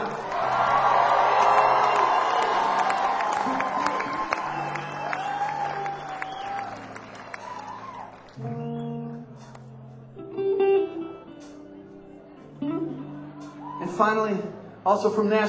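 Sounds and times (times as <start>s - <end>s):
audience cheering: 0.0s - 8.6s, 13.4s - 14.1s
audience applause: 0.0s - 8.7s
speech: 14.0s - 15.4s.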